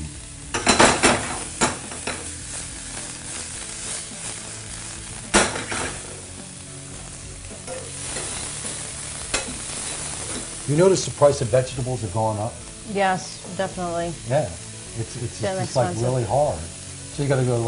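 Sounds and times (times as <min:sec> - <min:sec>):
pasta tossed with olive oil and ricotta sizzling in a pan: 0:00.0 - 0:17.6
speech: 0:10.7 - 0:17.6.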